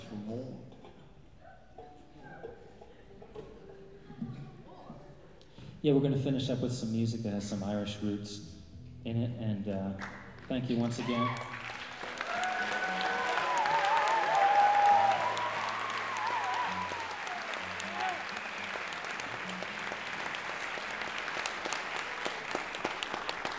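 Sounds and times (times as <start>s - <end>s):
speech: 0.2s - 0.8s, 5.8s - 11.6s
audience applauding: 10.0s - 23.5s.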